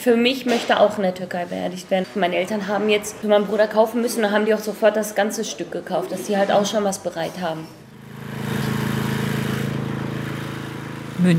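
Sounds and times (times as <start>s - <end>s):
speech: 0.0s - 7.8s
power grinder grinding a stone grave border at a cemetery in Munich: 8.0s - 11.3s.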